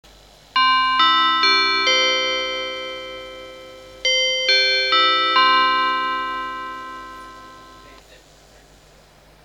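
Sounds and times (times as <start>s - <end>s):
chime: 0.6s - 8.0s.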